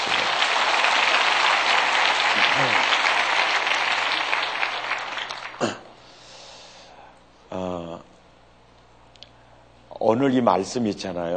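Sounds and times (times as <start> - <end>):
encouraging applause from audience: 0.0 - 5.9
speech: 10.2 - 11.3.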